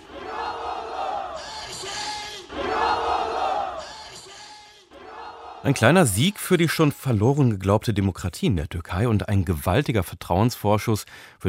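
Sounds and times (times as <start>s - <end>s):
large crowd cheering election victory: 0.0s - 6.6s
speech: 5.7s - 11.4s.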